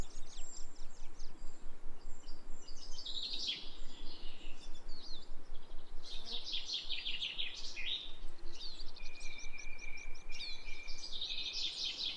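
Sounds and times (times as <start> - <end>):
birds singing and chirping: 0.0 - 12.1.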